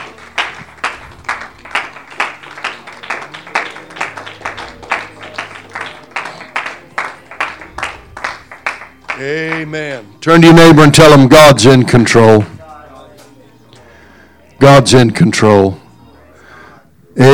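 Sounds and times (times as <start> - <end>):
audience hand clapping: 0.0 - 9.7
speech: 9.2 - 12.5, 14.6 - 15.8, 17.2 - 17.3.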